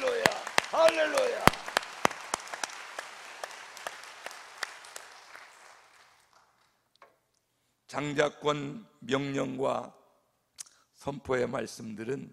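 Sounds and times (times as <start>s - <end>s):
audience applauding: 0.0s - 6.8s
speech: 0.8s - 1.5s, 7.9s - 10.0s, 11.0s - 12.3s.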